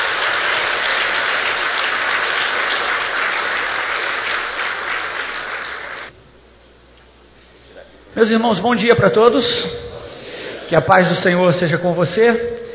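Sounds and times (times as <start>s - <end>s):
audience applause: 0.0s - 6.1s
speech: 8.2s - 9.8s, 10.7s - 12.6s.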